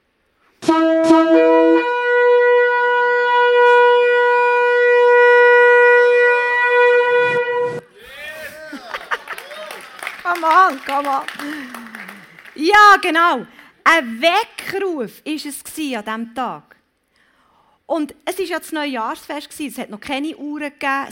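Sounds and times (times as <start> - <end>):
ram's horn being blown: 0.6 - 8.0
laughter: 7.9 - 12.6
speech: 11.0 - 11.7, 12.6 - 16.8, 17.9 - 21.0.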